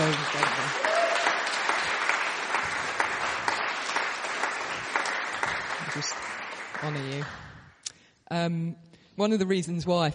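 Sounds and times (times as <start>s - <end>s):
audience clapping: 0.0s - 7.9s
speech: 6.0s - 6.2s, 6.8s - 7.4s, 8.3s - 10.1s.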